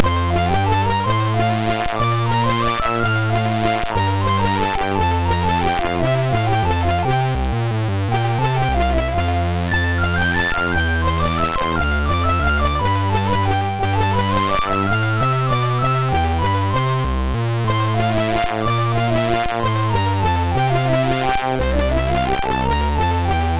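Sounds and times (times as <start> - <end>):
minuet on a MOS6581R3 sound chip: 0.0 - 23.5.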